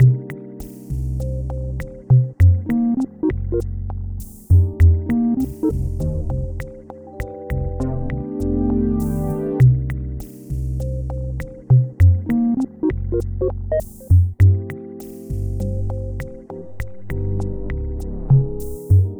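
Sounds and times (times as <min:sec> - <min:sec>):
music loop: 0:00.0 - 0:19.1.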